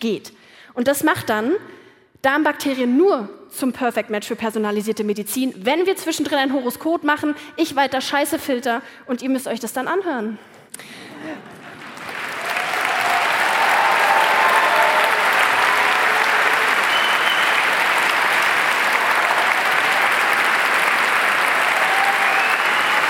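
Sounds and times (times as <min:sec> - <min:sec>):
speech: 0:00.0 - 0:11.6
audience applause: 0:11.4 - 0:23.0.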